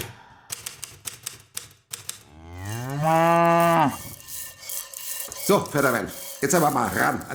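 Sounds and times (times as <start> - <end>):
cattle mooing on a farm in the French countryside: 2.3 - 4.1
speech: 5.5 - 7.3.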